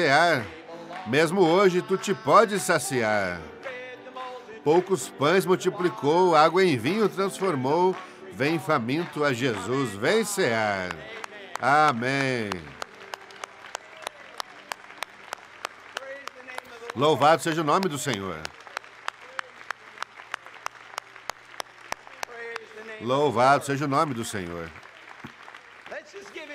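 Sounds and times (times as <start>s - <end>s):
audience applauding: 0.0s - 3.4s, 4.8s - 26.5s
speech: 0.0s - 3.6s, 4.6s - 12.8s, 17.0s - 18.6s, 23.0s - 24.8s.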